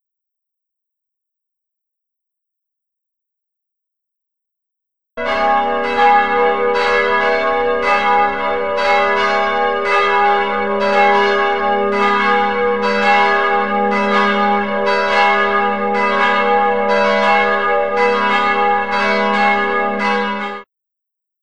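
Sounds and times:
Vatican City bells: 5.2s - 20.6s.

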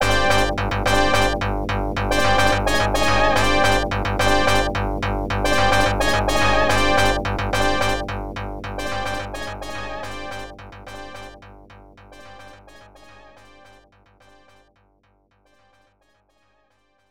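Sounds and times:
opening background music: 0.0s - 11.5s.

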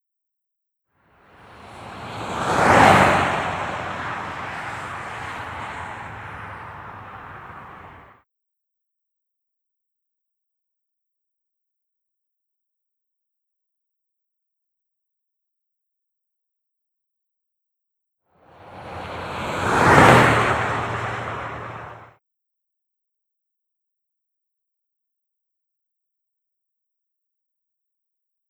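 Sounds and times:
cars: 1.2s - 8.2s, 18.5s - 22.2s.

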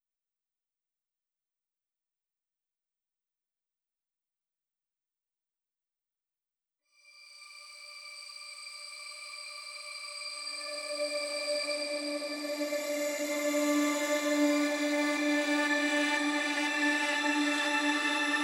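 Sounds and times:
synth pads: 10.6s - 18.4s.

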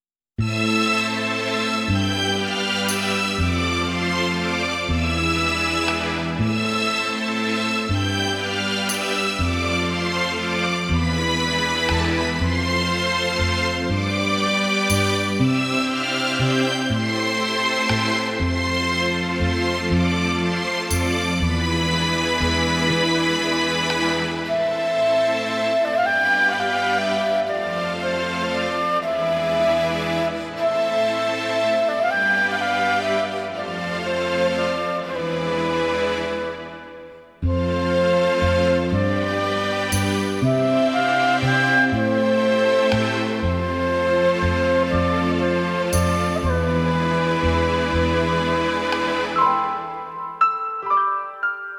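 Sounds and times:
strings: 0.4s - 51.6s.

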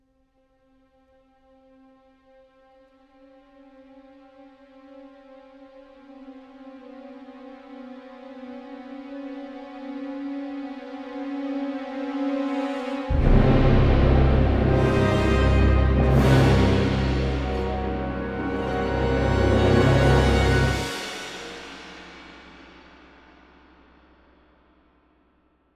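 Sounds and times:
music track in 4-4 meter: 12.9s - 22.6s.

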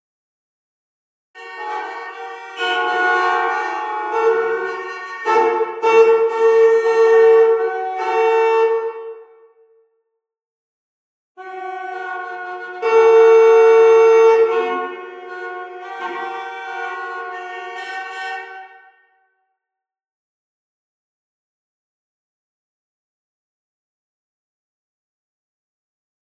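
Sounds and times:
city horns: 1.4s - 9.6s, 11.4s - 19.2s.

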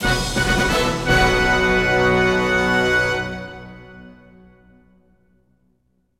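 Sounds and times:
combat victory jingle: 0.0s - 4.8s.

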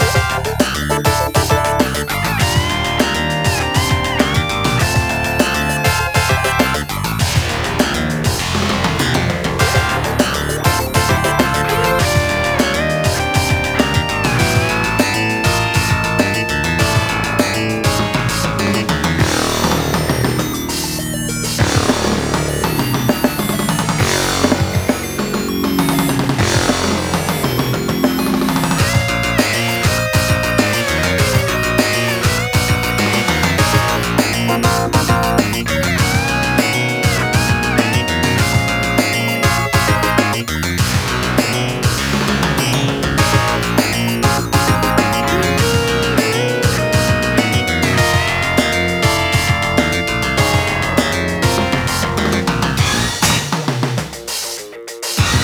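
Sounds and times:
elevator music loop: 0.0s - 55.4s.

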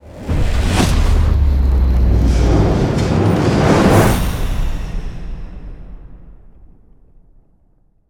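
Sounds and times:
modulated ramp stinger: 0.0s - 5.5s.

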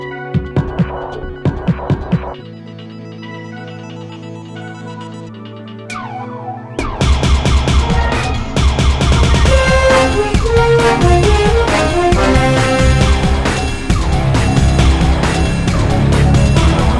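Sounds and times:
fight music: 0.2s - 2.4s, 5.9s - 16.9s.

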